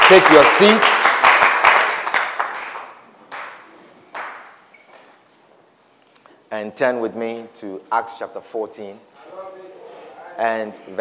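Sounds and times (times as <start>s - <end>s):
audience clapping: 0.0s - 4.6s
speech: 0.1s - 1.0s, 6.6s - 9.1s, 10.4s - 10.9s.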